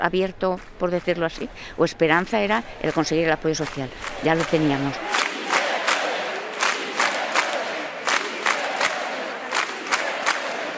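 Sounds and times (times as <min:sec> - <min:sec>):
speech: 0:00.0 - 0:05.2
crowd chanting in the Plaza de la Virgen: 0:02.2 - 0:10.7.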